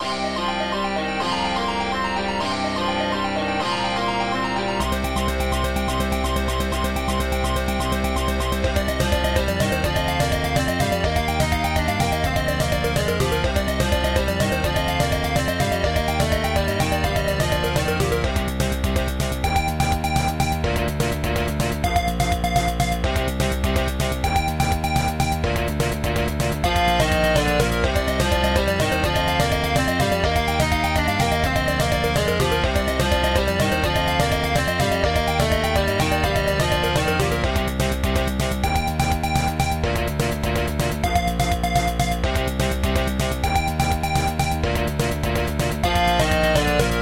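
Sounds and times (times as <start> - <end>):
background music: 0.0 - 47.0.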